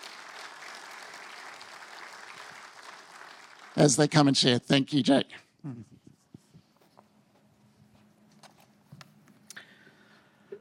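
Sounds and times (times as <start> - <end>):
audience applause welcoming speakers: 0.0 - 4.3
speech: 3.8 - 6.0.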